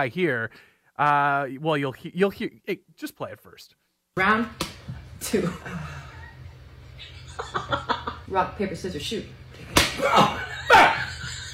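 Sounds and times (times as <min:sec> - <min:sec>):
speech: 0:00.0 - 0:06.1, 0:07.0 - 0:10.8
hard slaps to the face: 0:04.6 - 0:04.9, 0:09.7 - 0:10.1
laughter: 0:05.6 - 0:08.3, 0:10.0 - 0:11.5.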